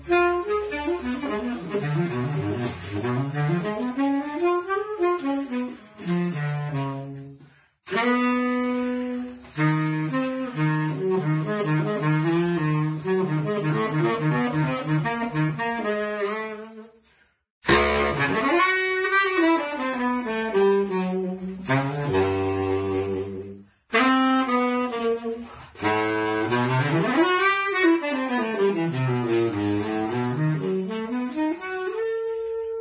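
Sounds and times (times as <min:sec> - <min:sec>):
saxophone: 0:00.0 - 0:32.8.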